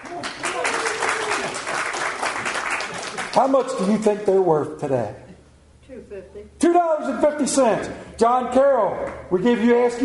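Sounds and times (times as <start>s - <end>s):
audience cheering: 0.0s - 3.3s
speech: 3.4s - 5.2s, 5.9s - 10.0s.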